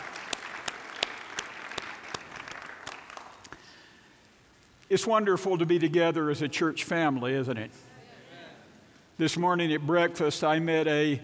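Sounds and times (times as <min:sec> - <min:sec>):
audience applause: 0:00.0 - 0:03.6
speech: 0:04.9 - 0:07.9, 0:09.2 - 0:11.2.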